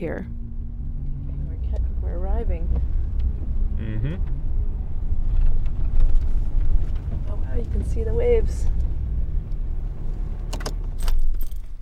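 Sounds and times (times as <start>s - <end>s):
speech: 0.0s - 0.4s, 2.0s - 3.0s, 3.8s - 4.4s, 7.5s - 8.8s
diesel engine running: 0.0s - 11.7s
metallic jingling: 10.9s - 11.7s.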